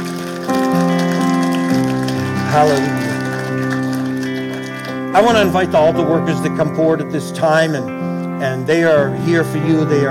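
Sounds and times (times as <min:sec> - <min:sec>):
audience clapping hands in praise: 0:00.0 - 0:05.8
speech: 0:02.6 - 0:03.1, 0:05.2 - 0:10.0.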